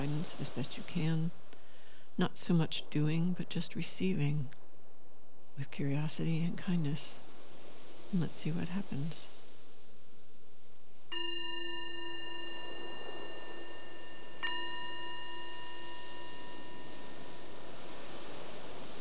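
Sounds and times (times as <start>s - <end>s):
soft hiss of noise: 0.0s - 18.9s
speech: 0.2s - 1.5s, 2.2s - 4.6s, 5.6s - 7.3s, 8.1s - 9.3s
meditation bell: 11.1s - 17.7s.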